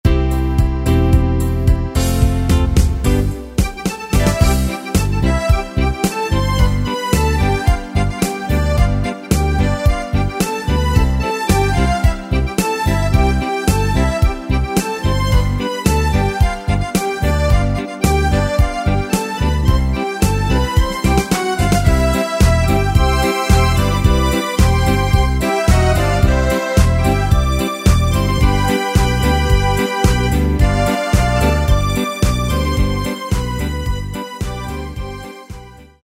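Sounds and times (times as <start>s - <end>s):
Yamaha YPT-400 electronic keyboard music: 0.0s - 36.0s.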